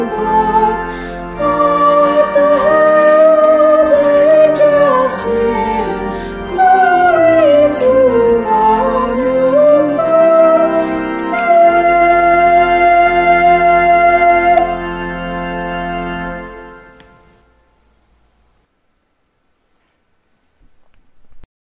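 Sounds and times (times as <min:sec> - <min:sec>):
descant melody: 0:00.0 - 0:18.0.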